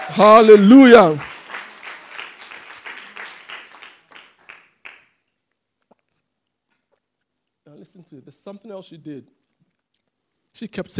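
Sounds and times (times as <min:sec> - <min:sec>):
crowd clapping: 0:00.0 - 0:05.2
speech: 0:00.1 - 0:01.3, 0:08.1 - 0:09.5, 0:10.6 - 0:10.9.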